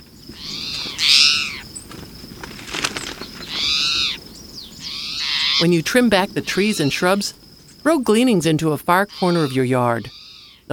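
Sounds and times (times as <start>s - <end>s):
towhee call: 0.0s - 1.9s, 2.7s - 7.3s, 9.0s - 10.7s
speech: 0.3s - 0.5s, 5.6s - 10.7s.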